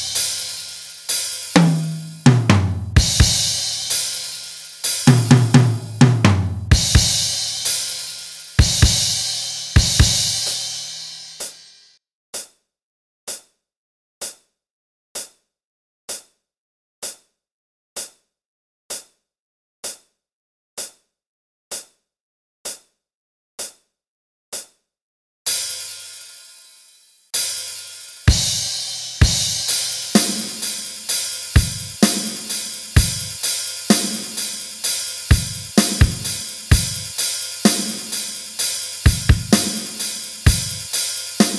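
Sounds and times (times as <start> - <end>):
drums jamming: 0.0 - 11.6, 27.4 - 41.5.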